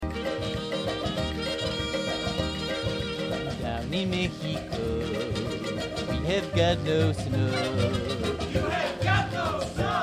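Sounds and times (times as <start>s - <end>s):
Christmas song: 0.1s - 10.0s.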